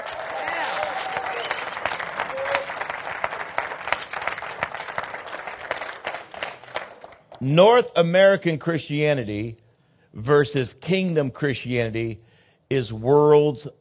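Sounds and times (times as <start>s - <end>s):
cheers and voices: 0.0s - 2.7s
audience applause: 0.0s - 7.4s
speech: 7.4s - 9.6s, 10.2s - 13.7s.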